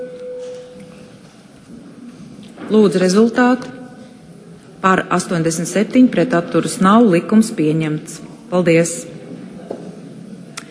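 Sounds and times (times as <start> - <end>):
parliament voting mode electronic signal tone: 0.0 - 1.0
low murmur: 0.0 - 10.6
speech: 2.7 - 3.8, 4.8 - 9.1.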